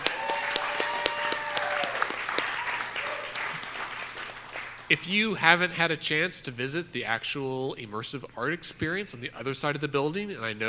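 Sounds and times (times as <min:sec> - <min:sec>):
audience round of applause: 0:00.0 - 0:04.9
speech: 0:04.9 - 0:10.6.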